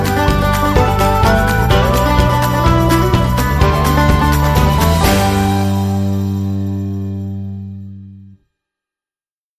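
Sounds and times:
Irish shuffle music without strings and ukulele: 0.0s - 6.8s.

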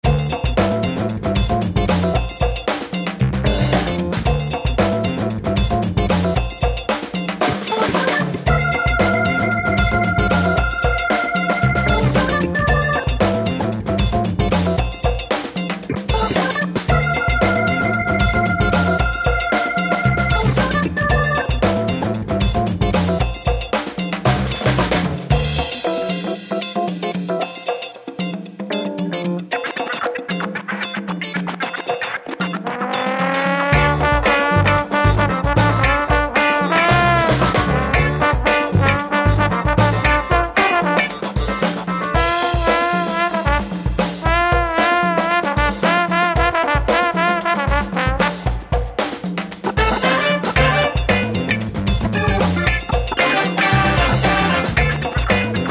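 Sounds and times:
percussive music: 0.0s - 55.6s.

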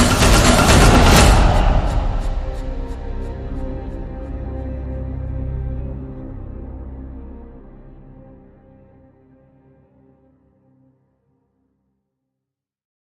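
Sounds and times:
drums: 0.0s - 3.0s.

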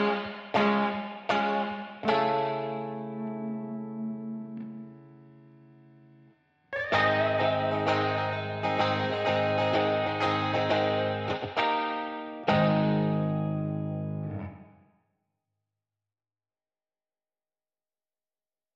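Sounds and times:
guitar: 0.0s - 15.0s.

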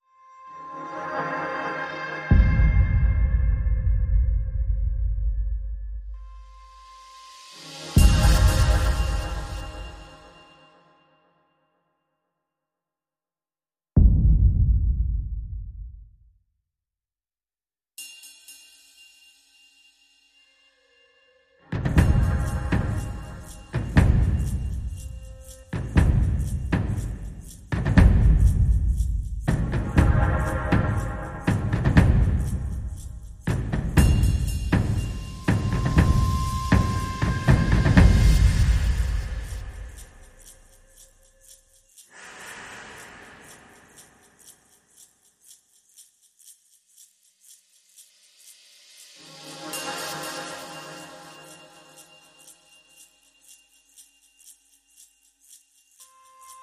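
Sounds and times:
percussion: 0.0s - 11.4s, 14.0s - 16.4s, 17.9s - 56.6s.

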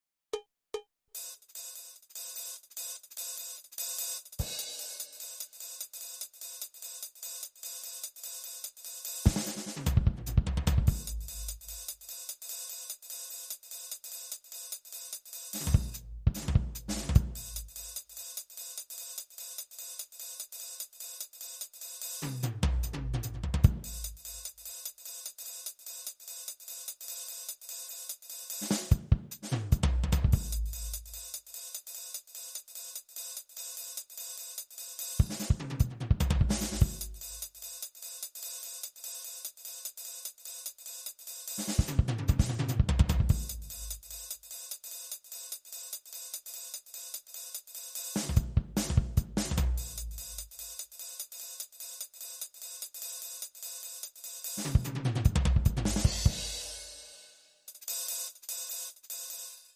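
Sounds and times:
bebop drum loop: 1.2s - 12.4s, 15.1s - 18.4s, 21.1s - 24.9s, 28.5s - 31.6s, 35.1s - 38.0s, 41.4s - 44.8s, 48.0s - 51.6s, 54.3s - 57.2s.

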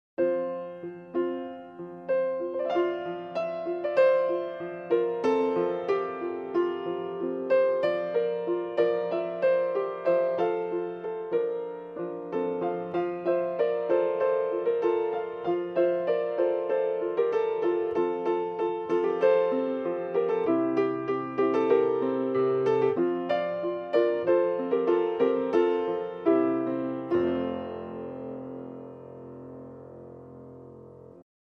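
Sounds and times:
solo piano carol: 0.2s - 31.2s.

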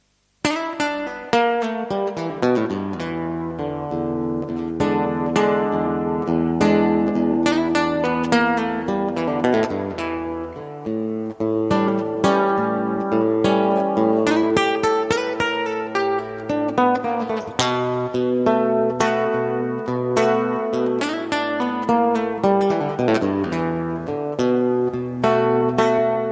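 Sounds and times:
blues guitar: 0.4s - 26.3s.

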